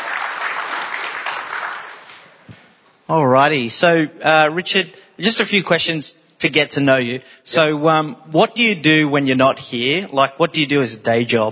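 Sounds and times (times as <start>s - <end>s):
audience clapping: 0.0s - 2.5s
speech: 3.1s - 11.5s.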